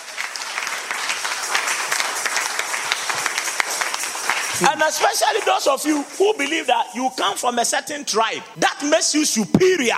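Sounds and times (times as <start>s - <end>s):
audience clapping: 0.0s - 7.0s
speech: 4.6s - 9.9s.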